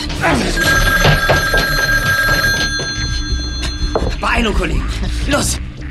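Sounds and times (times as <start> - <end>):
telephone ringing: 0.2 - 4.3
speech: 4.5 - 5.7.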